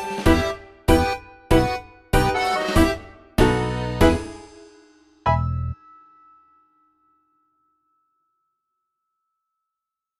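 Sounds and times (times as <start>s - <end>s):
ethnic tango music: 0.0s - 4.5s.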